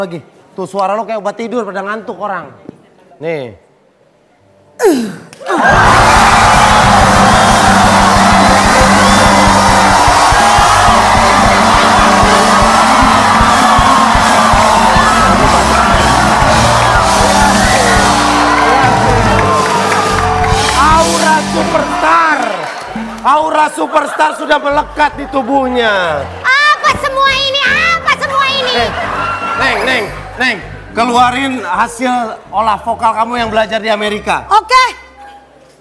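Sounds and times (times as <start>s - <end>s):
speech: 0.0s - 2.6s, 3.2s - 3.6s, 4.8s - 7.9s, 23.6s - 26.4s, 29.6s - 35.0s
audience cheering and whooping: 5.5s - 23.2s, 27.6s - 29.8s.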